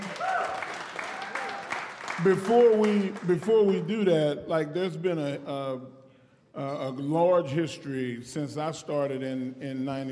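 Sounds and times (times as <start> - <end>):
audience clapping: 0.0 - 4.2
speech: 2.2 - 6.0, 6.6 - 10.0.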